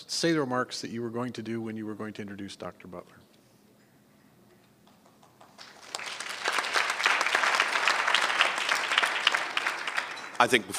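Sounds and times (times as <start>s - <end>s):
speech: 0.0s - 3.3s, 10.4s - 10.7s
audience applause: 5.0s - 10.7s.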